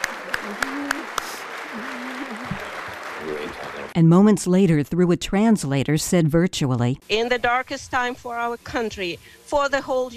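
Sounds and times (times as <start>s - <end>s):
U.S. lawmakers clapping in Congress welcoming Zelensky's address: 0.0s - 4.0s
speech: 4.0s - 10.1s.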